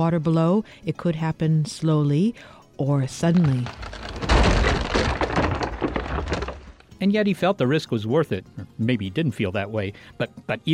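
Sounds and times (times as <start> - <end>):
speech: 0.0 - 4.0, 7.0 - 10.7
lake ice cracking: 3.1 - 7.0.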